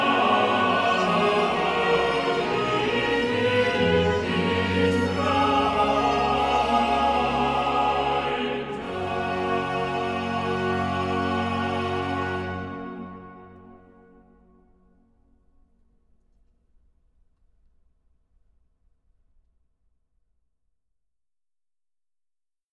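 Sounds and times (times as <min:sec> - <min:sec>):
choir singing cantatas: 0:00.0 - 0:14.1.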